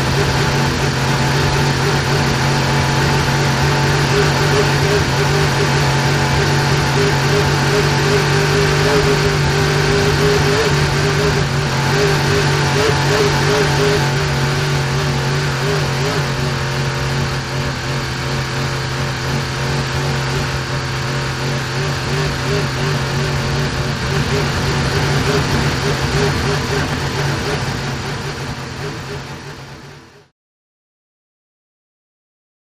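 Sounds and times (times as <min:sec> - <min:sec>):
motorboats in a boat race: 0:00.0 - 0:30.3.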